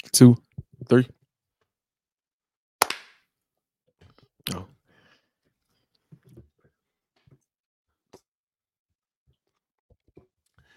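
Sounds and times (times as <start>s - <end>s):
speech: 0.2s - 1.2s, 4.5s - 4.7s
sharp hand claps: 2.8s - 3.2s.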